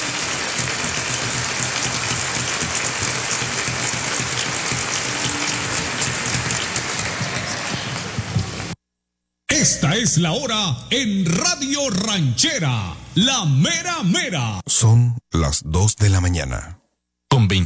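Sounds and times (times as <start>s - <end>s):
audience applause: 0.0s - 8.8s
speech: 9.6s - 16.8s, 17.4s - 17.6s.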